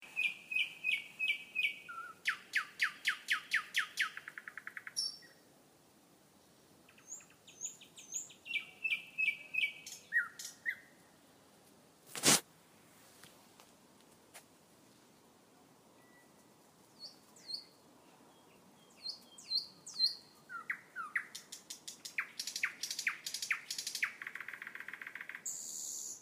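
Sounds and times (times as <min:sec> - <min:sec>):
common nightingale singing: 0:00.0 - 0:05.4, 0:06.4 - 0:11.0, 0:16.0 - 0:26.2.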